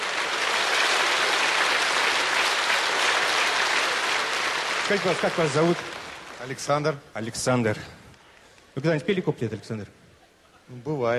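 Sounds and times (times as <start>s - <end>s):
audience applause: 0.0s - 7.0s
speech: 4.9s - 8.0s, 8.8s - 10.0s, 10.7s - 11.1s.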